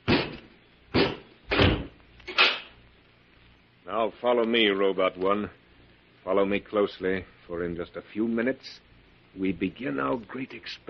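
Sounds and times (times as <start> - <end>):
door shutting with a heavy thud: 1.0 - 2.6
speech: 3.9 - 5.6, 6.2 - 10.8.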